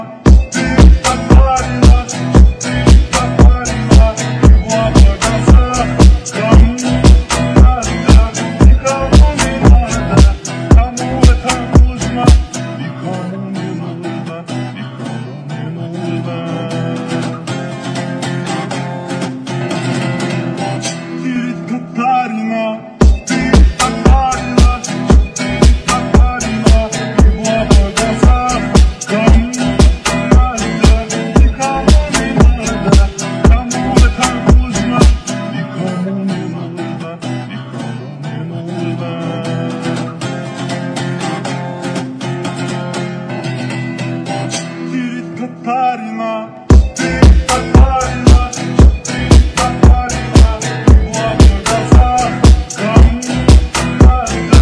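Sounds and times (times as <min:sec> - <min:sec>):
dance remix music: 0:00.3 - 0:13.0, 0:23.0 - 0:35.9, 0:46.5 - 0:54.6.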